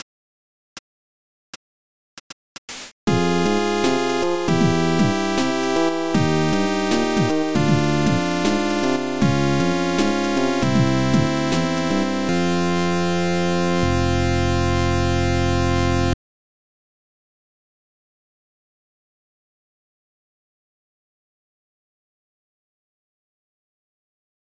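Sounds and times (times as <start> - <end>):
game over sound: 3.1 - 16.2.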